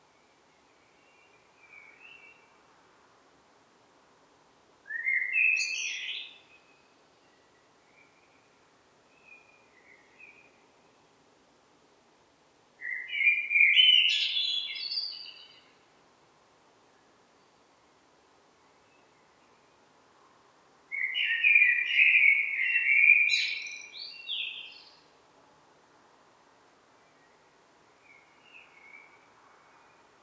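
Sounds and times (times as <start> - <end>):
common blackbird song: 0.1 - 2.6, 4.9 - 11.0, 12.8 - 15.8, 20.9 - 25.1, 27.0 - 30.1.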